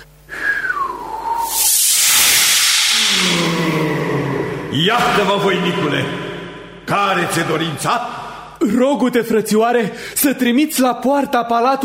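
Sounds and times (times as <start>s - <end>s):
thin descending whistle: 0.4s - 5.1s
wind rushing: 1.3s - 6.9s
speech: 4.7s - 6.2s, 6.9s - 11.8s.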